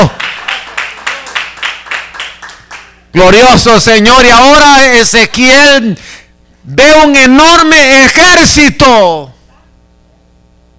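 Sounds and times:
audience clapping in a steady even rhythm: 0.0 - 3.0
speech: 3.1 - 9.3.

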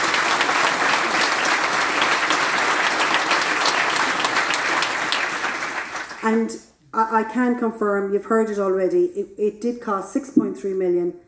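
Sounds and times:
audience applause: 0.0 - 6.3
speech: 6.2 - 11.2.

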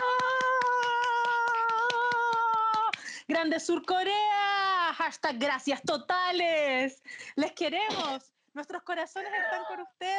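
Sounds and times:
applause: 0.0 - 3.2
speech: 3.3 - 4.3, 5.0 - 10.1.

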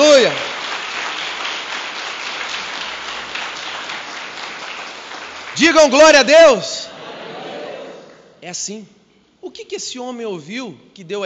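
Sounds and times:
applause: 0.0 - 6.3
speech: 5.6 - 6.9, 8.4 - 11.2.

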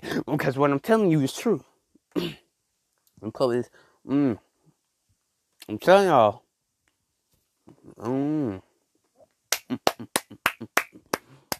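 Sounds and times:
speech: 0.1 - 2.4, 3.2 - 4.4, 5.6 - 6.4, 7.9 - 8.7
hand claps: 9.5 - 11.5.

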